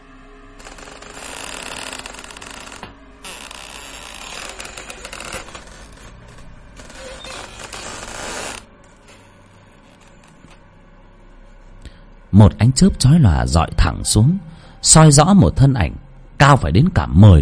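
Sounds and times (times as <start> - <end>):
rusty door hinge creaking: 0.6 - 9.2
speech: 12.4 - 17.3.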